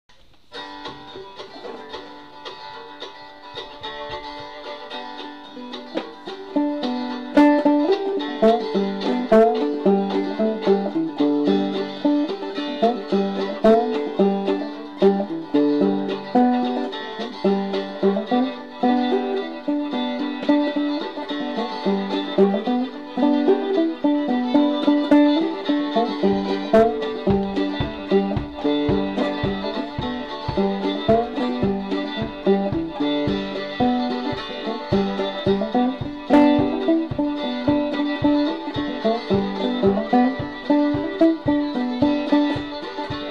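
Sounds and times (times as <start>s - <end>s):
fretless banjo: 0.1s - 43.2s.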